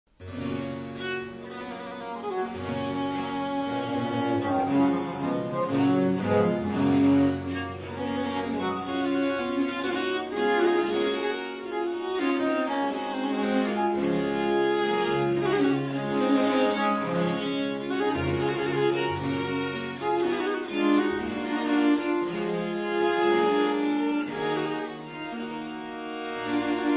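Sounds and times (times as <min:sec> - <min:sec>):
prelude in G major: 0:00.2 - 0:26.9.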